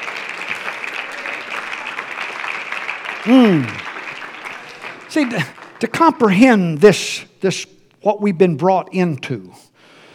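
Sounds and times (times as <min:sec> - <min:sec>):
audience clapping hands: 0:00.0 - 0:07.0
speech: 0:03.2 - 0:03.8, 0:05.2 - 0:09.7
person shouting: 0:03.3 - 0:03.8.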